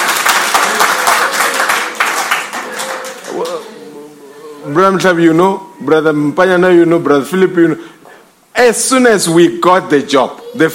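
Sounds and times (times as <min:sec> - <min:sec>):
audience clapping hands: 0:00.0 - 0:03.8
speech: 0:04.7 - 0:08.0, 0:08.6 - 0:10.7.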